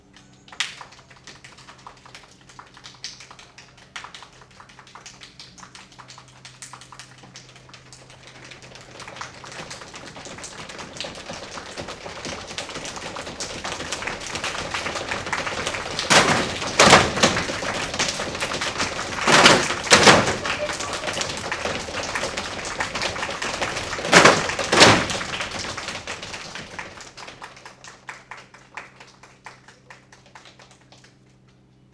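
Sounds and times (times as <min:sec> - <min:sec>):
thunderstorm: 0:09.4 - 0:27.0.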